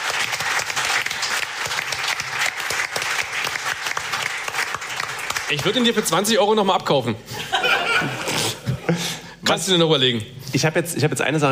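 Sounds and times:
audience applause: 0.0 - 6.3
speech: 5.5 - 8.2, 9.5 - 11.4
laughter: 7.3 - 9.2.

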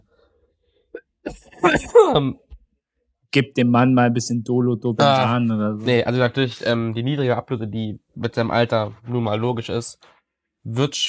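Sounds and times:
person coughing: 1.0 - 2.4
speech: 1.6 - 2.4, 3.3 - 11.0.

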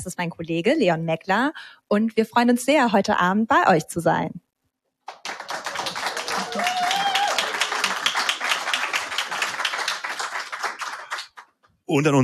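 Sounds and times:
speech: 0.0 - 4.4, 11.9 - 12.2
live audience applause: 5.1 - 11.6.

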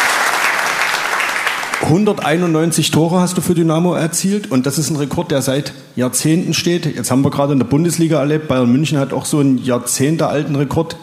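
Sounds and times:
audience applause: 0.0 - 2.0
speech: 1.8 - 11.0.

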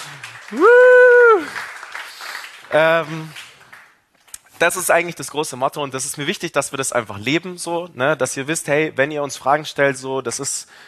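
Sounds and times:
audience applause: 0.0 - 4.0
speech: 0.5 - 0.8, 2.7 - 3.4, 4.6 - 10.8.

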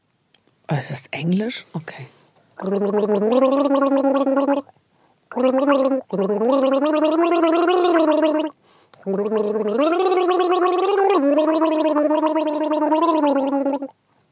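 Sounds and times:
speech: 0.7 - 13.5
person gargling a melody: 2.6 - 4.7, 5.3 - 14.0.

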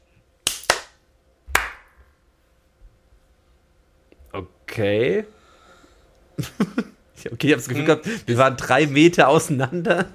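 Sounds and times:
single hand clap to sync recording: 0.4 - 2.0
speech: 4.3 - 5.4, 6.4 - 10.1
laughter: 6.4 - 7.0.

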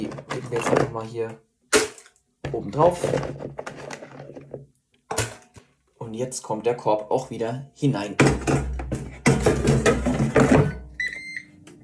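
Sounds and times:
speech: 0.5 - 1.5, 2.5 - 3.7, 6.1 - 10.0
kitchen appliance beeping: 10.6 - 11.7.

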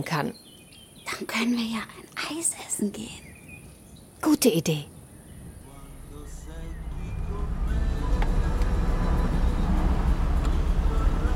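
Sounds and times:
speech: 0.0 - 0.5, 1.2 - 3.3, 4.2 - 5.0
wind rush in a convertible with the top down: 5.3 - 11.1
road noise from a light blue Fiat 500 convertible driving along the coast: 5.4 - 11.3.

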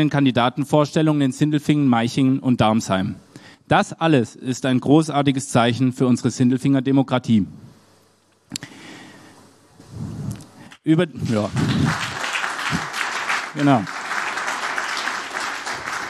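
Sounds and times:
speech: 0.0 - 7.6, 10.8 - 12.1, 13.5 - 14.0
audience applause: 11.2 - 16.0.

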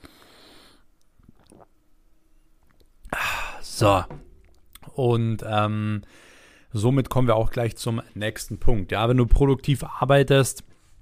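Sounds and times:
person taking a sip of water: 1.0 - 1.9, 2.6 - 4.9
speech: 3.8 - 4.2, 5.0 - 10.7.

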